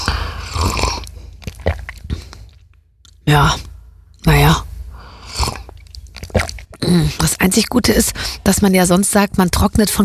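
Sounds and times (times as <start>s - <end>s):
slurping coffee mixed with olive oil: 0.0s - 2.5s, 5.2s - 6.8s
swallowing: 0.0s - 3.2s, 5.1s - 7.2s
speech: 3.3s - 3.7s, 6.9s - 10.0s.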